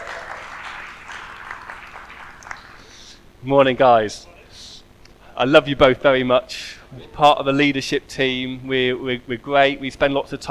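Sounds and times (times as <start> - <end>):
audience applause: 0.0 - 2.9
speech: 3.4 - 4.3, 5.4 - 10.4.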